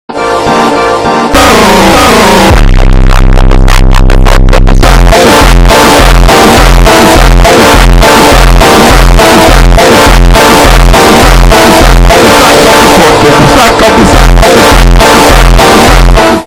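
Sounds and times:
bass boosted funk music: 0:00.1 - 0:16.4.

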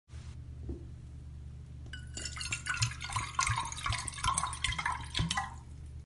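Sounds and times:
water pouring: 0:02.0 - 0:06.0.

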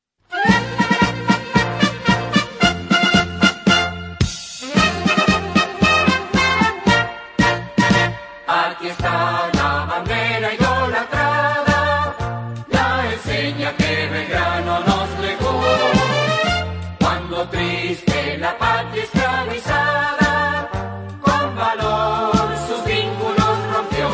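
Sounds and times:
march music: 0:00.3 - 0:24.1.

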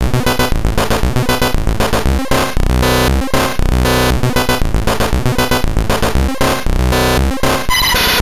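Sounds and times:
neurofunk music: 0:00.0 - 0:08.2.

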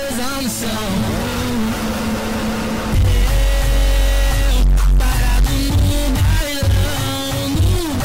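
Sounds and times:
bailao bass: 0:00.0 - 0:08.0.

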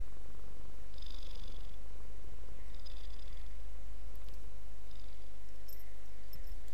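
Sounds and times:
cat purring: 0:00.0 - 0:06.7.

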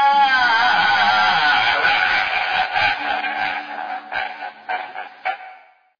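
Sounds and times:
man crying: 0:00.2 - 0:03.1
laughter: 0:00.5 - 0:05.7.

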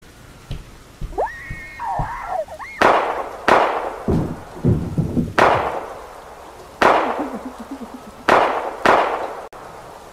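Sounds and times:
screaming: 0:01.2 - 0:03.1
gunshots: 0:02.8 - 0:06.0, 0:06.8 - 0:07.4, 0:08.3 - 0:09.4
laughter: 0:07.0 - 0:08.4.

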